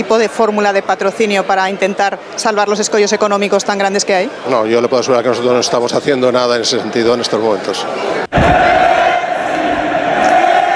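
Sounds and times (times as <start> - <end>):
speech: 0.0 - 8.8
stadium crowd chanting a player's name: 8.0 - 10.7.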